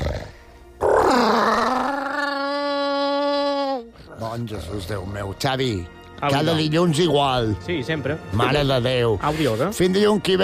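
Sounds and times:
tyrannosaurus roar: 0.0 - 3.1
speech: 4.4 - 10.4.

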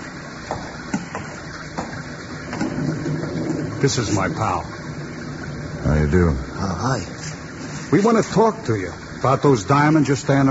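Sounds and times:
steady rain hissing: 0.0 - 10.4
water spattering and dripping: 0.0 - 10.4
speech: 3.8 - 4.8, 5.9 - 7.2, 7.9 - 10.4.

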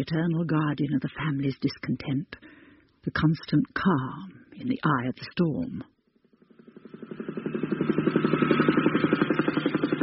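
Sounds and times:
speech: 0.0 - 5.9
helicopter rotor chopping: 6.2 - 10.0.

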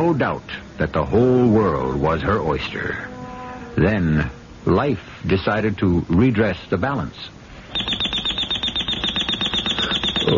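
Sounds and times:
speech: 0.0 - 3.1, 3.8 - 7.8
alarm clock ringing: 7.7 - 10.3.

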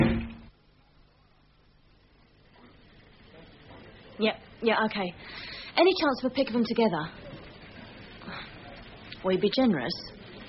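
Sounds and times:
door slamming shut: 0.0 - 0.5
speech: 4.2 - 7.3, 9.2 - 10.2.

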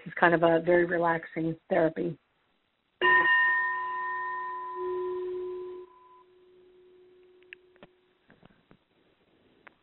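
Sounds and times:
speech: 0.1 - 2.2
small gong being played: 3.0 - 7.9.

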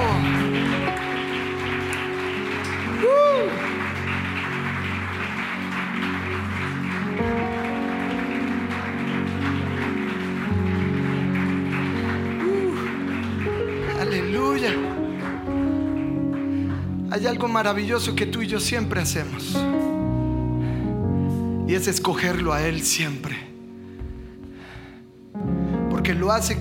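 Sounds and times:
audience applause: 0.0 - 17.2
sustained keyboard chords: 0.0 - 26.5
speech: 17.2 - 19.8, 21.7 - 23.5, 26.1 - 26.5.

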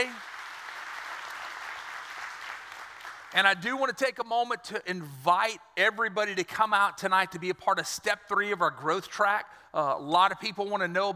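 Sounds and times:
audience clapping: 0.0 - 3.6
speech: 3.3 - 11.1.

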